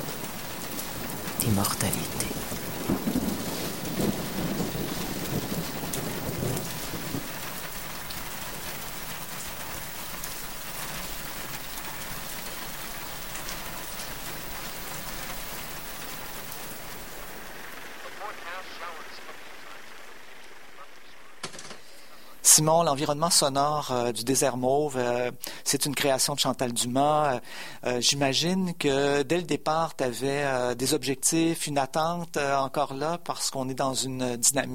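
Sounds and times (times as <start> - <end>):
low thunder rumbling: 0.0 - 20.4
steady rain pattering across a surface: 0.0 - 34.7
speech: 1.5 - 2.4, 22.6 - 34.7
faint voice-like tones: 17.9 - 22.4.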